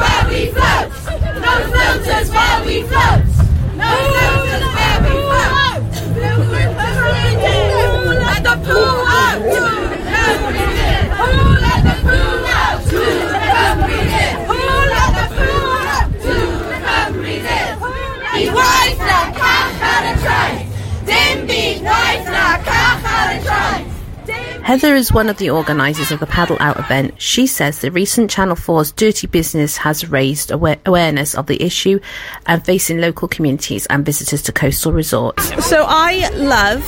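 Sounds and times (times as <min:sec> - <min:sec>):
protest crowd chanting: 0:00.0 - 0:26.9
speech: 0:24.7 - 0:36.8
laughter: 0:25.2 - 0:27.2, 0:35.4 - 0:36.2.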